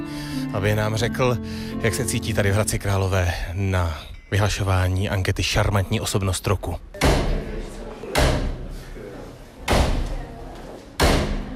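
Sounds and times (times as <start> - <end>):
speech: 0.5 - 6.9
murmuring voices backstage: 7.0 - 11.5
dressing room door slamming backstage at an awards ceremony in Hradec Králové: 8.1 - 8.7, 9.6 - 10.2, 11.0 - 11.5.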